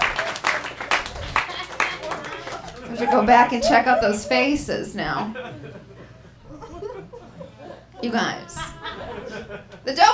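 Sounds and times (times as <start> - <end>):
audience clapping: 0.0 - 5.8
laughter: 0.0 - 10.1
murmur of voices: 0.0 - 10.1
speech: 3.0 - 5.9, 8.0 - 8.6, 9.5 - 10.1.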